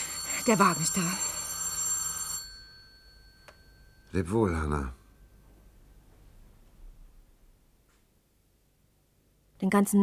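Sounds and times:
telephone bell ringing: 0.0 - 4.6
speech: 0.4 - 1.4, 4.1 - 5.0, 9.6 - 10.0.

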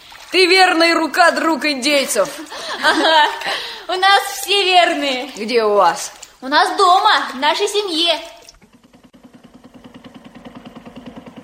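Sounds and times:
speech: 0.3 - 8.3
laughter: 2.3 - 3.7
motorboat engine: 8.6 - 11.4.

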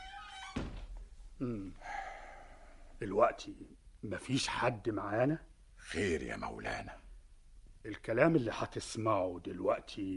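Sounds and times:
door being shut: 0.0 - 1.0
speech: 1.4 - 2.0, 3.0 - 7.1, 7.8 - 10.1.

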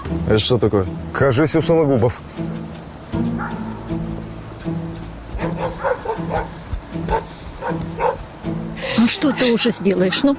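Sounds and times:
speech: 0.2 - 2.5, 9.1 - 10.3
dog barking: 3.4 - 3.9, 5.4 - 8.3, 9.3 - 10.3.

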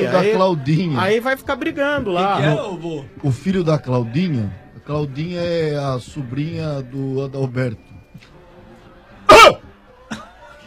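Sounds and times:
speech: 0.1 - 8.3
cough: 9.3 - 10.3.

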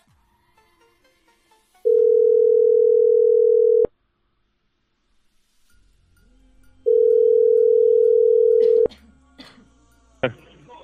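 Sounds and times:
telephone tone while a call is placed: 1.9 - 3.9, 6.9 - 8.9.

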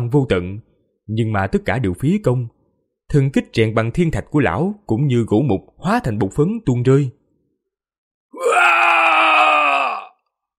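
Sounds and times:
speech: 0.0 - 7.2
man screaming loudly: 8.4 - 10.2.

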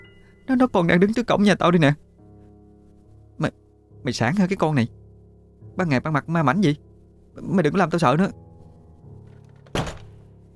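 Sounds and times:
speech: 0.5 - 2.1, 3.4 - 5.0, 5.8 - 8.4
loud banging on a door: 9.7 - 10.1.

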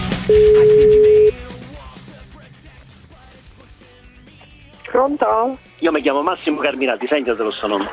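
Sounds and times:
telephone line tone before a call: 0.3 - 1.4
speech: 5.1 - 7.9.

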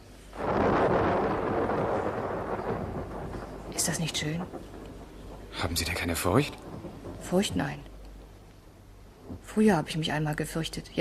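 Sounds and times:
thunder of a thunderstorm: 0.4 - 8.4
speech: 3.9 - 4.7, 5.6 - 7.9, 9.5 - 10.9.

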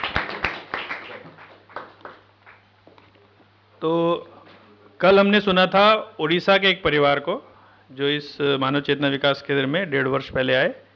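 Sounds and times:
small group applauding: 0.0 - 2.7
speech: 3.8 - 4.3, 5.0 - 10.8.

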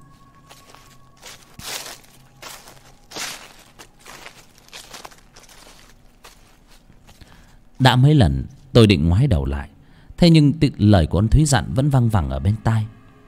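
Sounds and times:
footsteps crunching on dry leaves: 0.0 - 7.8
low steady hum: 0.0 - 13.2
speech: 7.8 - 13.0.

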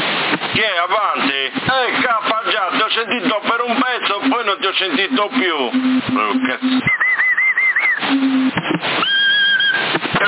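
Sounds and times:
speech: 0.6 - 7.0
person whistling over CB radio: 3.8 - 10.0.

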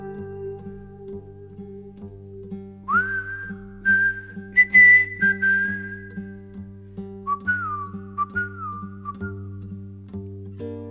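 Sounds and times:
whistled tune: 2.9 - 6.6, 7.2 - 9.6.

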